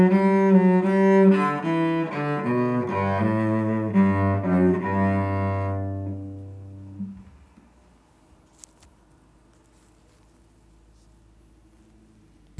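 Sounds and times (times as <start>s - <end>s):
cello: 0.0s - 7.7s.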